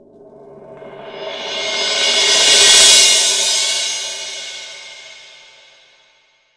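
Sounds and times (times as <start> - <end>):
18-inch crash cymbal struck with old mallet: 0.9 - 6.0.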